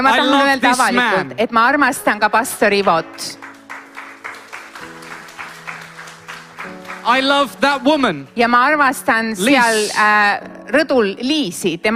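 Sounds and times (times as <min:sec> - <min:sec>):
speech: 0:00.0 - 0:03.5, 0:07.0 - 0:11.9
audience clapping in rhythm: 0:02.7 - 0:08.3.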